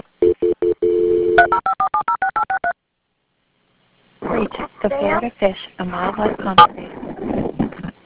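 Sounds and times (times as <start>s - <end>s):
dual-tone dialing beeps: 0.3s - 2.7s
speech: 5.0s - 7.5s.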